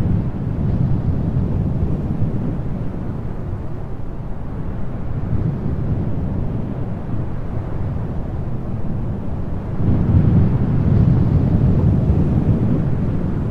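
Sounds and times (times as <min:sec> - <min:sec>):
wind: 0:00.0 - 0:13.4.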